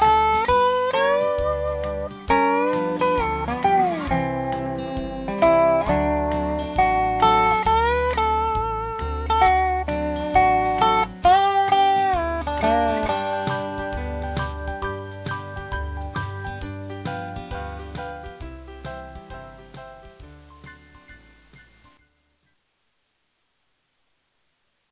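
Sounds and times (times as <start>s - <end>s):
slow dobro playing: 0.0s - 15.3s.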